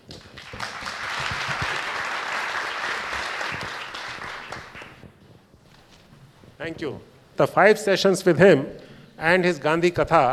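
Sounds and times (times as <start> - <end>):
audience applause and standing ovation: 0.0 - 5.1
speech: 6.6 - 10.3.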